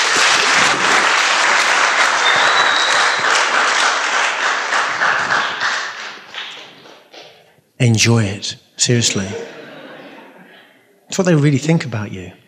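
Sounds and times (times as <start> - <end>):
audience hand clapping applause: 0.0 - 7.5
speech: 7.8 - 9.5, 11.2 - 12.4
laughter: 8.9 - 10.9.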